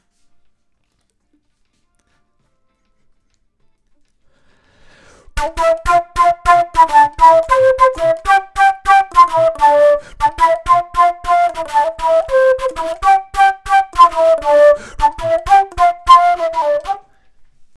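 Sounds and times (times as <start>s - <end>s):
flute: 5.4s - 17.2s.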